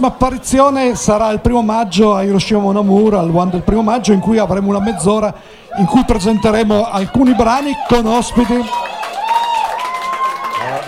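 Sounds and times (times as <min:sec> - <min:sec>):
speech: 0:00.0 - 0:08.9
applause: 0:07.3 - 0:10.8.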